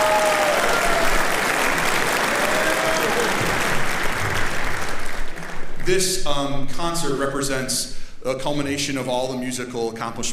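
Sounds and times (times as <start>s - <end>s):
large audience applause for a concert band: 0.0s - 5.9s
speech: 5.9s - 10.3s.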